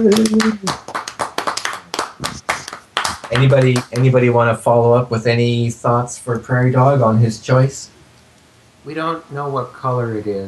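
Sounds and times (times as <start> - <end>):
speech: 0.0 - 0.8, 3.4 - 8.0, 8.8 - 10.4
scattered applause from a small audience: 0.0 - 4.4.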